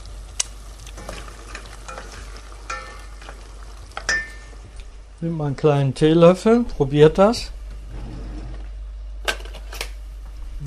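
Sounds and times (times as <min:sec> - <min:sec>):
food simmering in a pan with vinegar: 0:00.0 - 0:05.2
speech: 0:05.2 - 0:07.6.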